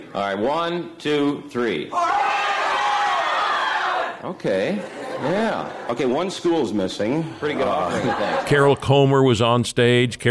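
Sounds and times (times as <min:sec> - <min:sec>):
speech: 0:00.1 - 0:02.4, 0:04.2 - 0:10.2
audience yelling out where they're from: 0:01.9 - 0:04.2
laughter: 0:04.7 - 0:09.0.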